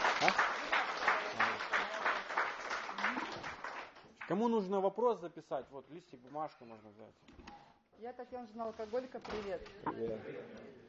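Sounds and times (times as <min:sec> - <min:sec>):
group applause at a support-group meeting for families of alcoholics: 0:00.0 - 0:04.8
speech: 0:04.3 - 0:07.4, 0:08.0 - 0:10.7.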